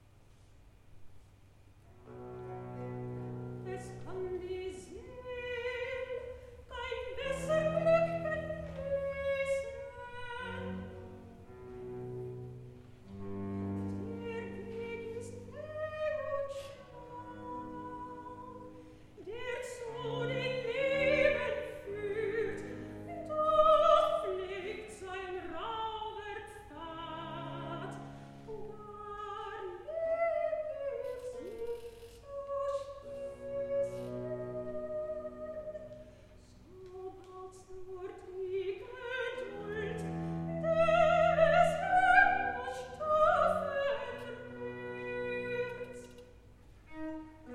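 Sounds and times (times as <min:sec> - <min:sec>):
soprano singing recitative: 0:03.6 - 0:11.1, 0:14.0 - 0:47.5.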